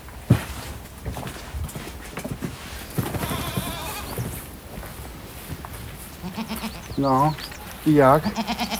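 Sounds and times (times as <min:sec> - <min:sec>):
goats' shuffling hooves: 0:00.0 - 0:08.7
rustling movement of goats: 0:00.4 - 0:08.7
whole herd of goats bleating on a farm: 0:02.9 - 0:04.5, 0:06.2 - 0:07.0, 0:08.1 - 0:08.7
speech: 0:07.0 - 0:08.7.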